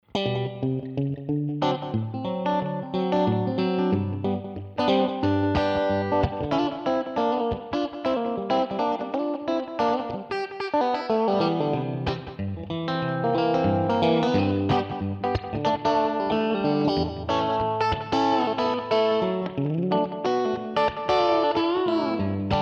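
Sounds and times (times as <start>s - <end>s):
guitar: 0.0s - 22.6s.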